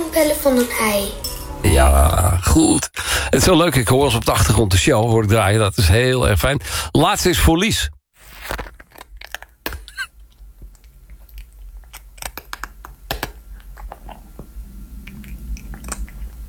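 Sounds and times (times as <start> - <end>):
speech: 0.2 - 8.7
cat eating: 8.3 - 16.4.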